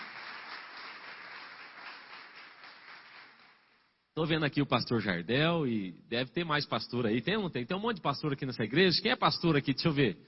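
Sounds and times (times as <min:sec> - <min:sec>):
audience applause: 0:00.0 - 0:03.7
speech: 0:04.2 - 0:10.2.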